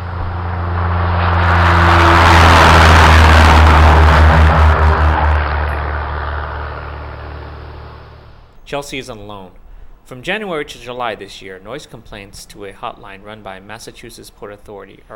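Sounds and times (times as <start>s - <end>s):
air noise: 0.0s - 10.2s.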